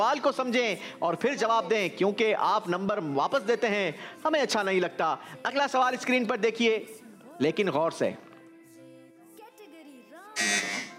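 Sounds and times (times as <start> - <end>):
speech: 0.0 - 8.3
quiz show buzzer pressed by a school team: 10.4 - 10.9.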